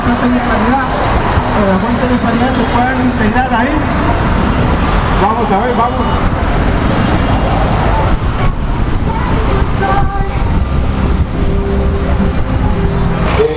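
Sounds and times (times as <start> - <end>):
road traffic roaring during a street protest march: 0.0 - 13.5
speech: 0.2 - 1.0, 1.6 - 6.4.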